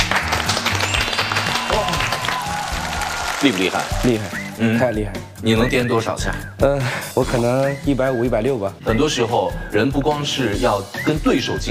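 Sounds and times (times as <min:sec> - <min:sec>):
audience applause: 0:00.0 - 0:04.6
speech: 0:03.4 - 0:11.7.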